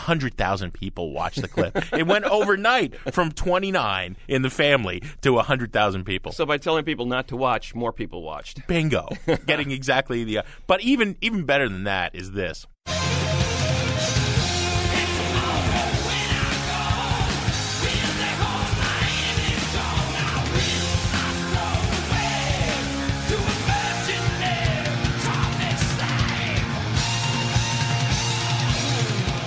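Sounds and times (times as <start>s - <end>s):
speech: 0.1s - 13.1s
laughter: 1.3s - 3.2s, 9.1s - 9.8s
distorted electric guitars: 12.9s - 29.4s
driving bass line: 12.9s - 29.4s
pounding drums: 12.9s - 29.4s
raw shouted vocal: 14.4s - 29.4s.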